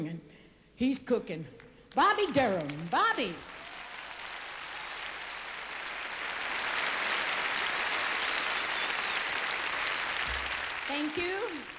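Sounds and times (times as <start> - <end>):
speech: 0.0 - 3.5, 11.0 - 11.7
audience applause: 3.4 - 11.7.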